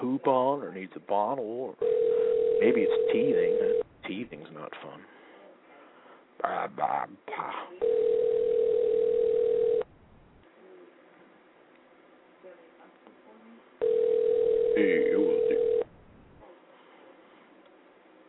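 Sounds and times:
speech: 0.2 - 5.2, 6.4 - 8.3, 14.8 - 15.2
landline telephone dial tone: 1.8 - 3.8, 7.8 - 9.9, 13.8 - 15.9.

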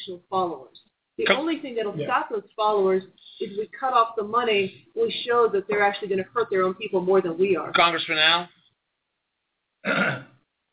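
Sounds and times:
speech: 0.1 - 8.6, 9.8 - 10.3
burp after drinking Coke: 9.8 - 10.4.

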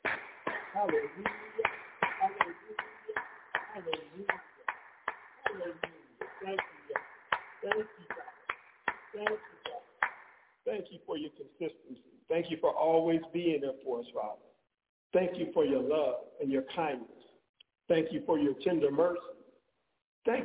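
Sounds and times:
audience hand clapping: 0.0 - 10.5
speech: 0.8 - 1.8, 11.3 - 14.5, 15.1 - 17.2, 17.9 - 19.4, 20.2 - 20.4.

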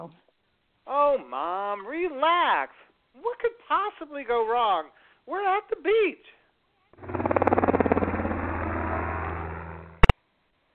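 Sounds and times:
speech: 0.0 - 0.3, 0.9 - 6.4
helicopters flying overhead: 7.0 - 10.1.

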